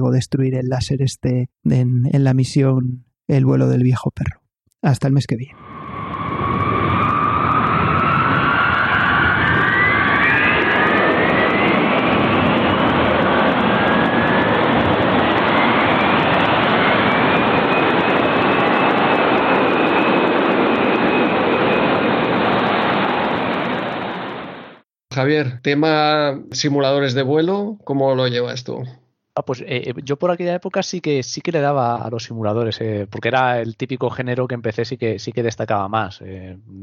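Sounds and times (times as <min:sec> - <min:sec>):
speech: 0:00.0 - 0:05.7, 0:25.2 - 0:36.8
B-52 bomber jet engines roaring: 0:05.6 - 0:24.8.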